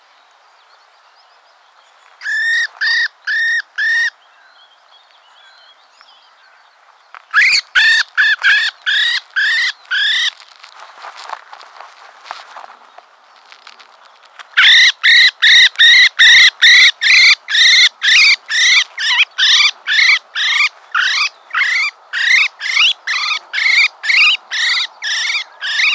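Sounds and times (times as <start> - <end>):
common blackbird harsh calls: 2.2 - 6.7, 7.3 - 10.4, 14.5 - 25.9
faint rustling: 9.2 - 14.6.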